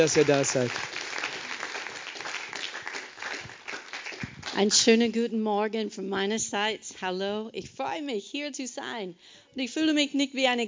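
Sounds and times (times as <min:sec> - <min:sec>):
speech: 0:00.0 - 0:01.0, 0:04.6 - 0:10.6
warm audience applause: 0:00.0 - 0:04.6.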